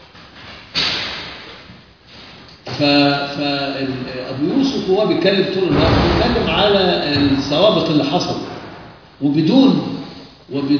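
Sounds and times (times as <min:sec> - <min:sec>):
speech: 0:02.7 - 0:08.5, 0:09.2 - 0:09.9, 0:10.5 - 0:10.7
door being closed: 0:05.7 - 0:09.0.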